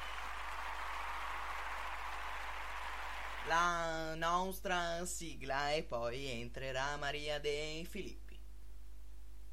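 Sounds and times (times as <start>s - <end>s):
crowd clapping: 0.0s - 3.8s
speech: 3.4s - 8.2s.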